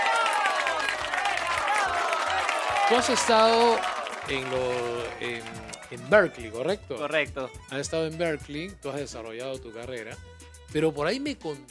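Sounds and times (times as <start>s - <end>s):
audience applause: 0.0s - 6.6s
speech: 2.9s - 11.6s.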